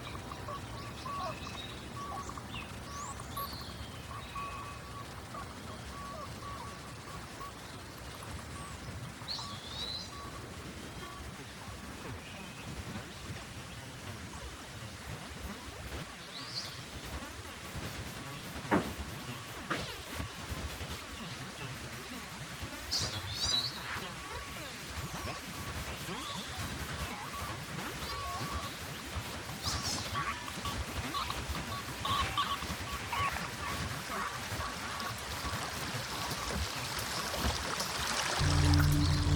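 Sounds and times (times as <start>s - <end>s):
white tail woods nature sounds: 0.0s - 39.3s.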